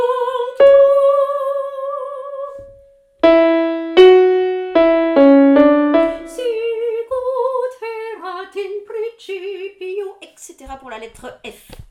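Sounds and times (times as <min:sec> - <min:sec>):
tenor singing: 0:00.0 - 0:02.3, 0:03.2 - 0:08.3.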